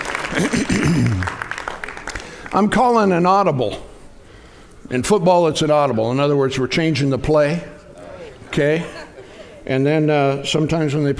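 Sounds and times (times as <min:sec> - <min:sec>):
audience applauding: 0:00.0 - 0:02.8
speech: 0:02.5 - 0:03.9, 0:04.9 - 0:07.8, 0:08.5 - 0:09.0, 0:09.6 - 0:11.1
laughter: 0:08.0 - 0:09.9.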